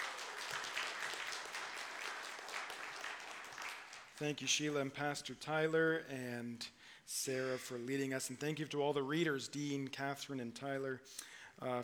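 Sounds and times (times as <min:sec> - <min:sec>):
church congregation applauding its worship team during a Good Friday service: 0:00.0 - 0:04.8
speech: 0:04.2 - 0:11.8.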